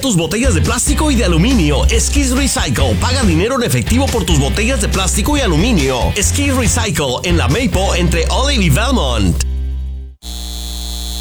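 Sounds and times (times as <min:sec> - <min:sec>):
speech: 0:00.0 - 0:09.5
data center electrical hum: 0:08.1 - 0:11.1.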